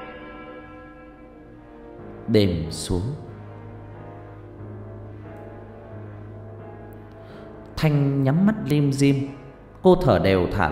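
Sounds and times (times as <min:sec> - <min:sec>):
antique clock chiming: 0:00.0 - 0:01.6
speech: 0:02.3 - 0:03.3, 0:07.8 - 0:10.7.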